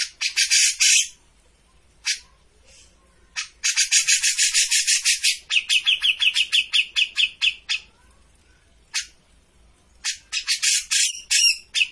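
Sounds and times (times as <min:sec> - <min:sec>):
grey-cheeked bulbul harsh chattering: 0:00.0 - 0:01.2, 0:03.2 - 0:08.1, 0:09.9 - 0:11.9.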